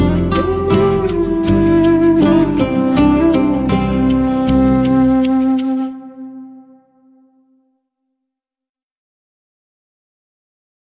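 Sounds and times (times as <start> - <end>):
instrumental theme music: 0.0 - 7.8.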